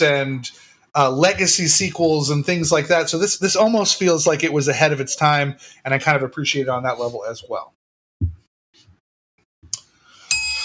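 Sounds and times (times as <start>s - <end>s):
speech: 0.0s - 7.8s
soft thumps and clicks: 8.2s - 9.0s
bell strike: 10.3s - 10.6s.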